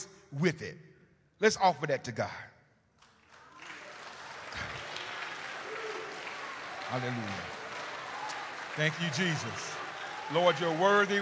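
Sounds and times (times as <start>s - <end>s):
speech: 0.0s - 2.5s, 6.9s - 7.6s, 8.8s - 11.1s
audience clapping: 3.0s - 11.1s.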